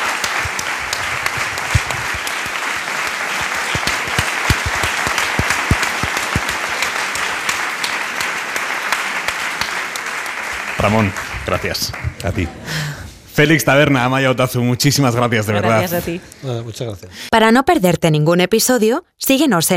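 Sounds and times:
audience applause: 0:00.0 - 0:12.4
speech: 0:10.8 - 0:12.8, 0:13.4 - 0:19.7.

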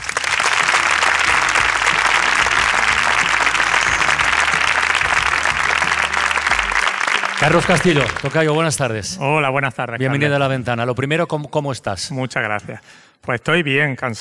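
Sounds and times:
applause from a sizable audience: 0:00.0 - 0:08.8
speech: 0:07.4 - 0:14.1.

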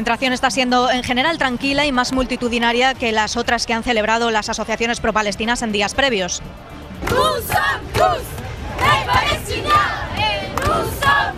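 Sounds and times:
speech: 0:00.0 - 0:08.4
protest crowd shouting slogans: 0:07.0 - 0:11.3.

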